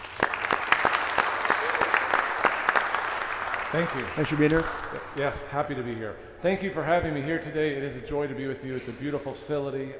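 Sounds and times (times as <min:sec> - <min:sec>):
small audience applause at a lay theology conference: 0:00.0 - 0:05.5
speech: 0:03.7 - 0:09.9.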